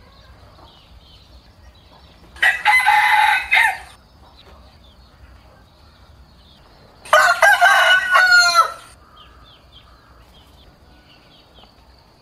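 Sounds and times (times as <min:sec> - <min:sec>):
rooster crowing: 0:02.4 - 0:04.0, 0:07.1 - 0:09.0.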